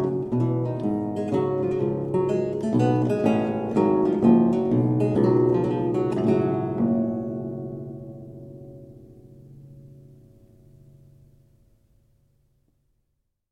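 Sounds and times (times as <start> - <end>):
baroque lute playing a gavotte in G minor: 0.0 - 10.2.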